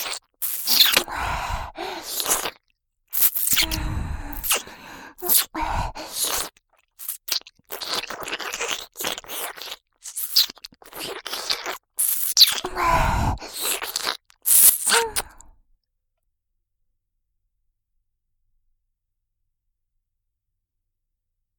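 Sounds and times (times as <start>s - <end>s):
ear licking sounds: 0.0s - 1.1s, 2.0s - 2.6s, 3.2s - 12.8s, 13.4s - 15.4s.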